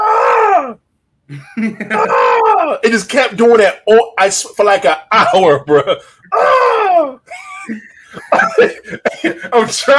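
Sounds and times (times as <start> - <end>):
voice imitating a hospital patient's screaming: 0.0 - 0.8, 1.9 - 2.8, 6.3 - 7.2
speech: 1.3 - 9.9.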